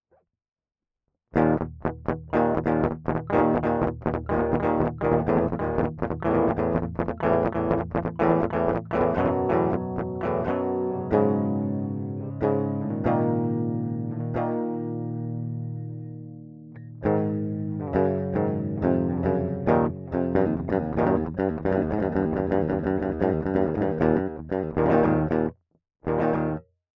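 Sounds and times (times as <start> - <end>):
DiMarzio pickup guitar with delay: 1.4 - 25.5, 26.1 - 26.6.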